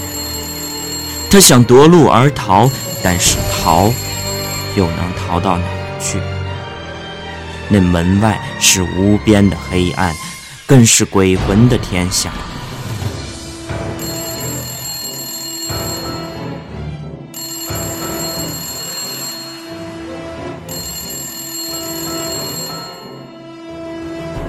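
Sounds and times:
telephone bell ringing: 0.0s - 6.2s, 13.9s - 23.5s
speech: 1.3s - 4.2s, 4.8s - 6.3s, 7.7s - 12.6s.

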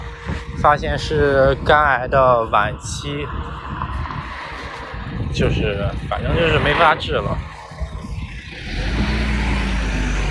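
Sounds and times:
speech: 0.6s - 3.6s, 5.3s - 7.5s
loud car engine: 3.6s - 10.2s.

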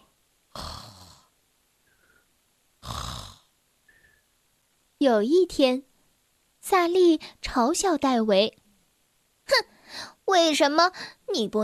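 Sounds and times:
snoring: 0.5s - 1.3s, 2.8s - 3.5s
speech: 5.0s - 5.9s, 6.6s - 8.6s, 9.5s - 11.6s.

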